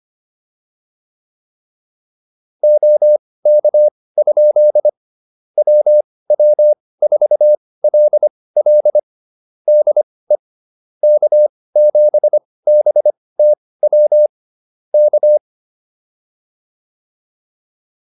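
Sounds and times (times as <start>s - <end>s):
morse code QSO practice: 2.6s - 5.0s, 5.6s - 9.0s, 11.0s - 14.3s, 15.0s - 15.4s.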